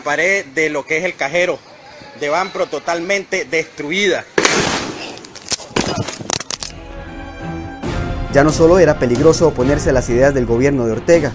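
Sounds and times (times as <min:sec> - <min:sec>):
speech: 0:00.0 - 0:04.3, 0:08.4 - 0:11.3
gunshot during live broadcast: 0:04.4 - 0:06.0.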